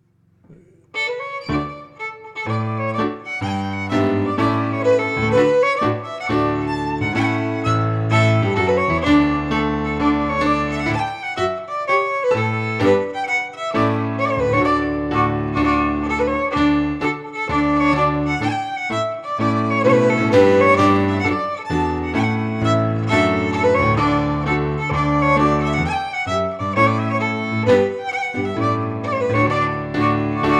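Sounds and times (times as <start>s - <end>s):
Scottish fiddle playing a march: 0.9s - 30.5s.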